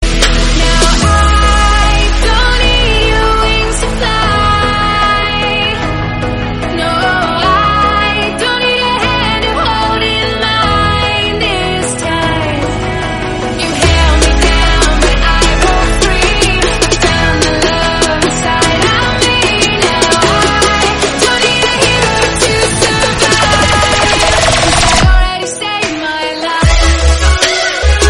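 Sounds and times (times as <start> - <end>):
remix music: 0.0 - 28.0.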